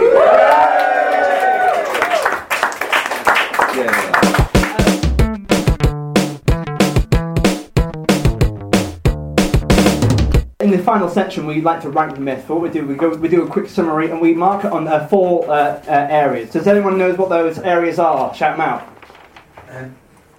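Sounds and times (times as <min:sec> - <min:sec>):
live audience cheering: 0:00.0 - 0:05.0
rhythmic hand claps: 0:01.9 - 0:10.5
speech: 0:11.0 - 0:18.9, 0:19.7 - 0:20.0.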